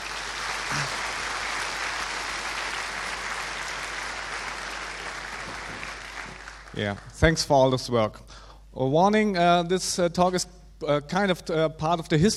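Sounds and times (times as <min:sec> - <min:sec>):
audience applause: 0:00.0 - 0:07.2
speech: 0:06.8 - 0:12.3.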